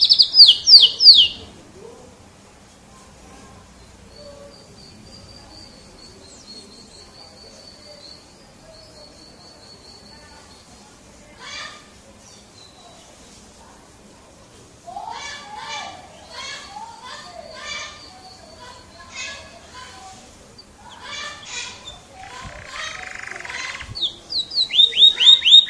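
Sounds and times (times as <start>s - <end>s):
champion singing canary: 0.0s - 1.6s, 3.7s - 10.8s, 15.0s - 25.6s.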